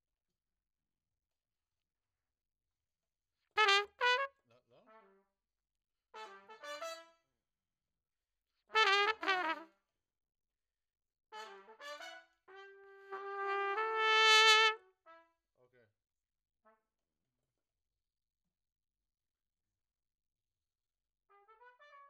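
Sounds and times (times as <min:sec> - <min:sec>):
trumpet: 0:03.6 - 0:05.3, 0:06.1 - 0:07.3, 0:08.7 - 0:09.9, 0:11.3 - 0:15.7, 0:16.6 - 0:17.0, 0:21.3 - 0:22.0.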